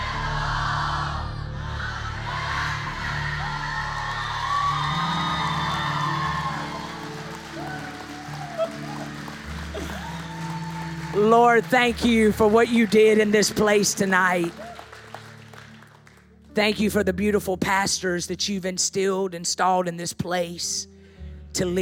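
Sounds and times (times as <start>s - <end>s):
large crowd cheering and yelling: 0.0s - 16.4s
whoops and shouted bellows: 3.3s - 11.2s
speech: 11.2s - 14.6s, 16.6s - 20.9s, 21.5s - 21.7s.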